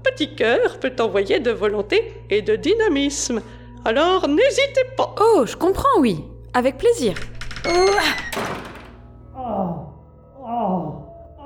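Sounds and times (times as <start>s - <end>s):
speech: 0.1s - 8.6s
door slamming: 6.7s - 9.1s.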